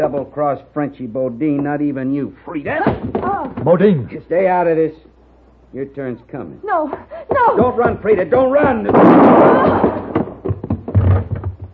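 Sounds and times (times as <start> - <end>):
speech: 0.0 - 5.1, 5.7 - 10.1
quieter broken thumping: 2.7 - 3.8, 7.3 - 11.7
gunshot in a radio drama: 8.9 - 10.2.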